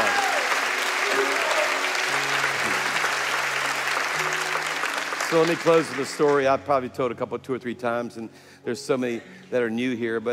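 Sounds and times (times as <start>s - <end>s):
audience clapping: 0.0s - 6.7s
speech: 5.3s - 10.3s.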